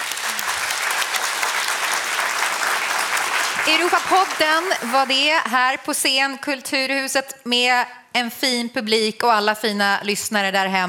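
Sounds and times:
audience applause: 0.0 - 5.3
speech: 3.6 - 10.8.

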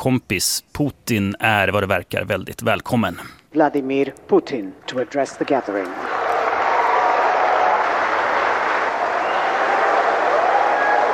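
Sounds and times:
speech: 0.0 - 6.2
crowd noise: 4.7 - 11.1
audience applause at a business forum at the BRICS summit: 5.0 - 11.1.

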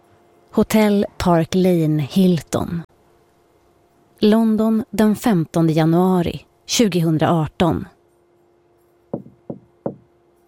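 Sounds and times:
speech: 0.5 - 2.8, 4.2 - 8.0
hotel cleaner knocking on a room door at the Park Lane Hilton in London: 9.1 - 10.1.

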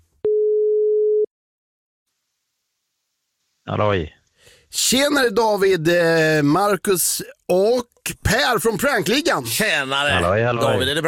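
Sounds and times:
telephone ringing tone after dialing for a prank call: 0.2 - 1.3
speech: 3.7 - 11.0.

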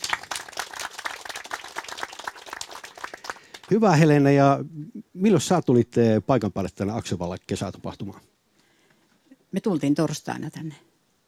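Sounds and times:
audience applause at a Finnish summer event: 0.0 - 4.1
speech: 3.7 - 8.3, 9.5 - 10.9.

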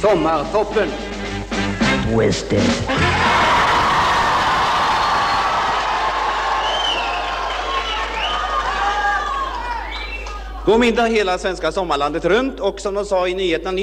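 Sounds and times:
speech: 0.0 - 1.2, 2.1 - 3.4, 10.6 - 13.8
young crowd cheering and shouting happily: 3.0 - 10.7.

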